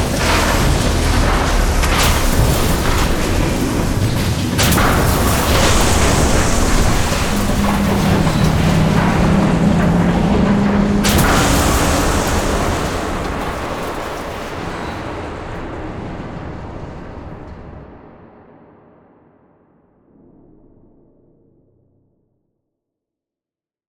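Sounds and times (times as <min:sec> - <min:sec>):
explosion: 0:00.0 - 0:20.9.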